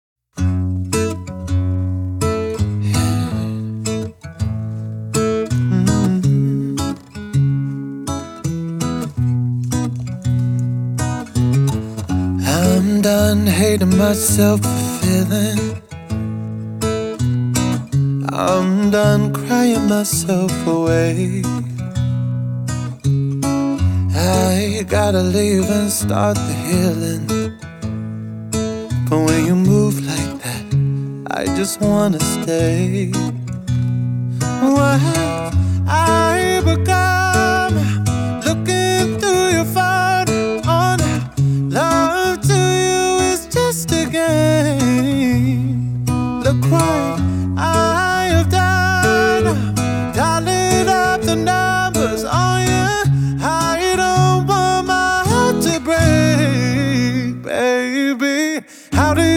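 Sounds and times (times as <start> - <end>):
acoustic music: 0.4 - 59.3.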